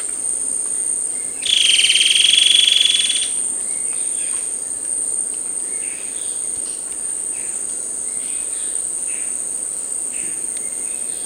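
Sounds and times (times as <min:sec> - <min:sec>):
constant high insect hiss: 0:00.0 - 0:11.2
buzzy bird call: 0:01.4 - 0:03.4.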